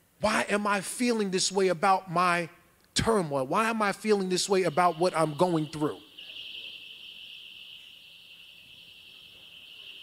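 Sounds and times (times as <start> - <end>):
speech: 0.2 - 6.0
alarm going off: 3.6 - 10.0.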